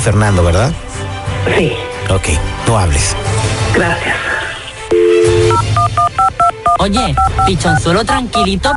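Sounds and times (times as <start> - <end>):
speech: 0.0 - 0.8, 1.4 - 4.3, 6.8 - 8.7
telephone number being dialed: 4.9 - 7.6.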